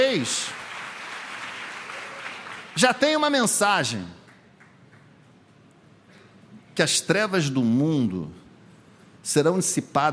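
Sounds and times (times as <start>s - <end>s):
audience applause: 0.0s - 3.3s
speech: 0.2s - 0.6s, 2.8s - 4.2s, 6.8s - 8.4s, 9.2s - 10.1s.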